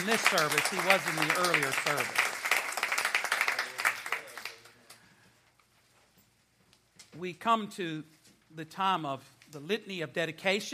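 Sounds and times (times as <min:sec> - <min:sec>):
speech: 0:00.0 - 0:02.4, 0:07.2 - 0:10.7
audience applause: 0:00.0 - 0:04.9.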